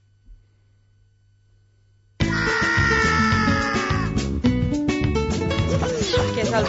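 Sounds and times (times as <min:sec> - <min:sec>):
shrill cartoonish scream of rabbit-like characters: 0:02.2 - 0:04.2
laughter: 0:05.5 - 0:06.6.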